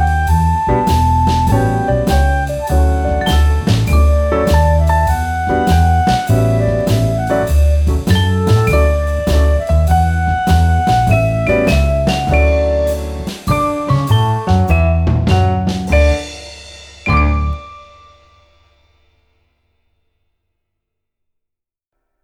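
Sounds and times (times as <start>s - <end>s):
nursery rhyme instrumental: 0.8s - 18.3s.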